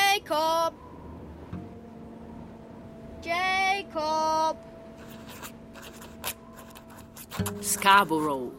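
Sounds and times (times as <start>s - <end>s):
speech: 0.2s - 0.8s, 3.2s - 4.7s, 7.4s - 8.5s
pen writing a place name on an envelope: 5.0s - 7.8s.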